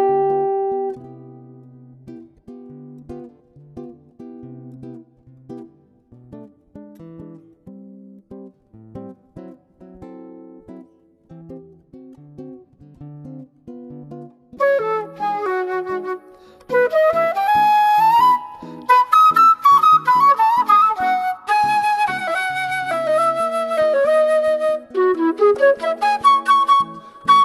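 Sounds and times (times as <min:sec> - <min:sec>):
autumn music: 0:00.0 - 0:01.4, 0:14.6 - 0:27.4.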